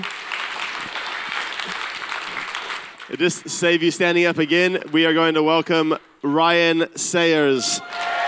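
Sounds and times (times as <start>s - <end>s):
applause from a church congregation: 0.0s - 3.8s, 7.6s - 8.2s
speech: 3.2s - 8.2s.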